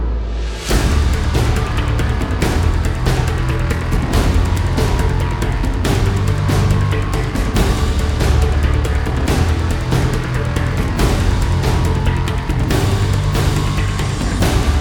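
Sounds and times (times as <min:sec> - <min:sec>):
percussion: 0:00.0 - 0:14.8.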